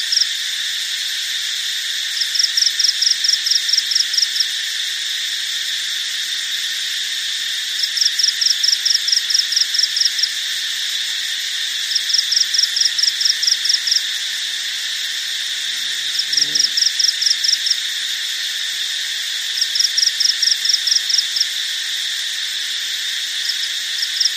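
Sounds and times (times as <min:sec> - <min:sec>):
heavy continuous crickets chirping: 0:00.0 - 0:24.3.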